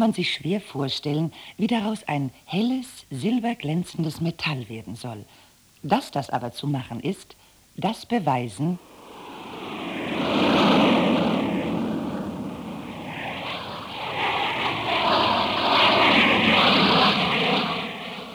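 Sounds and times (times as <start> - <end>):
speech: 0.0 - 8.9
airplane flying overhead: 8.8 - 18.3.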